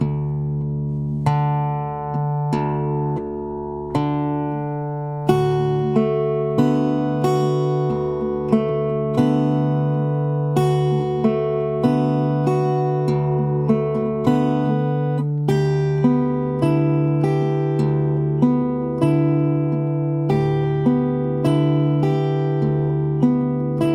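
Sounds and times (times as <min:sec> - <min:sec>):
guitar in dropped D practice slow: 0:00.0 - 0:23.9.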